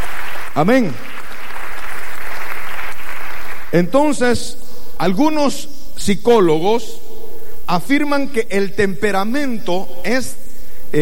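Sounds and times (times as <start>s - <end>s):
congregation applauding during a church service: 0.0s - 3.9s
speech: 0.6s - 1.2s, 3.7s - 7.0s, 7.7s - 11.0s.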